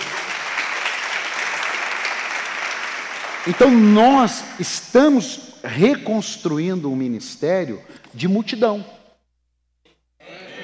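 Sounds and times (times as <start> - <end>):
audience applause: 0.0 - 3.9
speech: 3.4 - 9.0.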